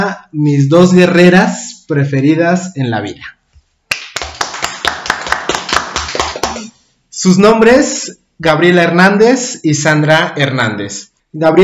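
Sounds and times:
speech: 0:00.0 - 0:03.4, 0:07.2 - 0:11.6
audience applause: 0:04.1 - 0:06.7.

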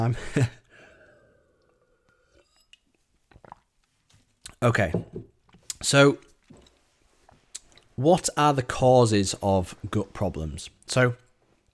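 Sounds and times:
speech: 0:00.0 - 0:00.6, 0:04.6 - 0:05.2, 0:05.8 - 0:06.2, 0:08.0 - 0:11.2
person sipping juice: 0:00.8 - 0:04.6.

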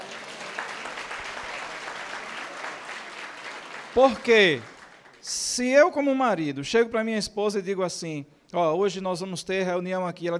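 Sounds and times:
audience applause: 0:00.0 - 0:05.5
speech: 0:03.9 - 0:10.3.

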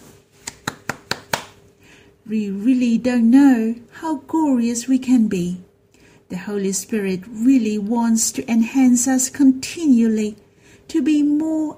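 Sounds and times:
audience clapping: 0:00.4 - 0:01.6
speech: 0:02.3 - 0:05.7, 0:06.3 - 0:11.7.

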